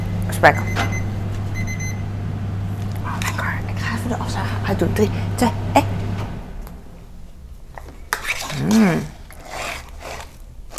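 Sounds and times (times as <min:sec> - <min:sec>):
tumble dryer running: 0:00.0 - 0:07.3
speech: 0:00.4 - 0:00.9, 0:04.0 - 0:05.9, 0:08.6 - 0:09.2.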